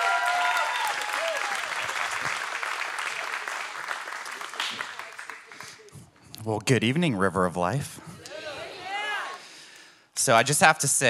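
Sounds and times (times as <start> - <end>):
audience applause: 0.0 - 5.9
speech: 6.4 - 8.1, 10.3 - 11.0.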